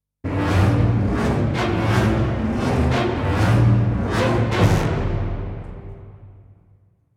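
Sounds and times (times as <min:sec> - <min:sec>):
epic orchestral stinger: 0:00.3 - 0:06.8.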